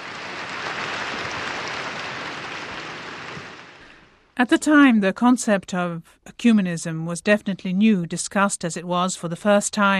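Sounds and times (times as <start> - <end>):
large crowd applauding: 0.0 - 4.1
speech: 4.4 - 9.9.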